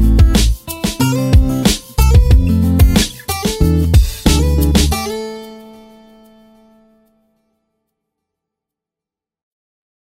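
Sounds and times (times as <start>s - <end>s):
rap instrumental with guitars: 0.0s - 5.9s.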